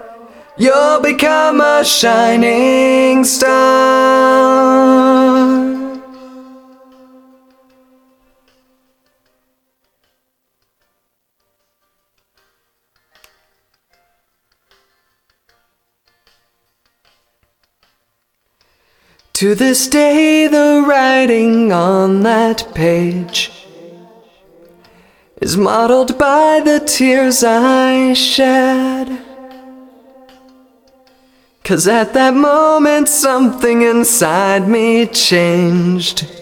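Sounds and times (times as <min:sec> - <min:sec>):
different vocals: 0:00.0 - 0:09.0, 0:18.8 - 0:36.4.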